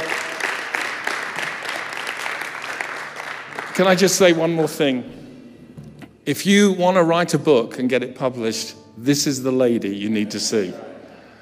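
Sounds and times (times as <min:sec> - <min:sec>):
crowd applauding: 0:00.0 - 0:04.7
speech: 0:03.8 - 0:05.2, 0:06.3 - 0:10.9.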